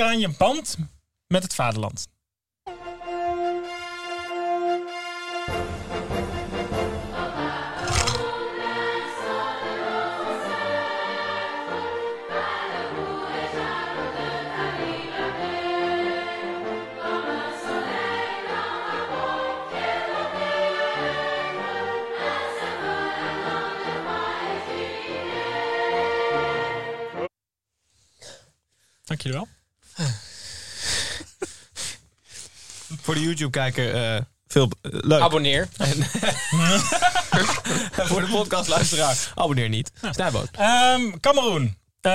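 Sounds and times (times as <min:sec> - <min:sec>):
speech: 0:00.0 - 0:02.2, 0:29.2 - 0:29.6, 0:33.1 - 0:42.1
national anthem: 0:02.7 - 0:27.3
laughter: 0:35.7 - 0:39.2.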